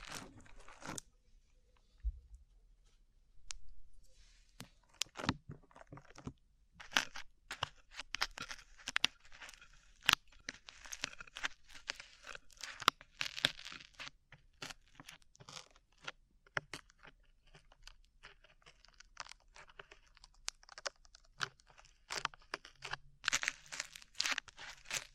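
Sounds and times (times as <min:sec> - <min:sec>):
sticky slime being squeezed and pulled apart: 0:00.0 - 0:01.0, 0:04.8 - 0:06.2, 0:06.8 - 0:16.1, 0:16.7 - 0:25.1.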